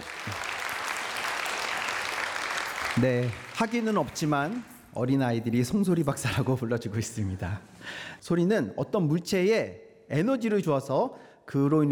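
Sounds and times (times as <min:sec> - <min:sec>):
audience applause welcoming a guest onstage: 0:00.0 - 0:04.9
speech: 0:03.0 - 0:11.9.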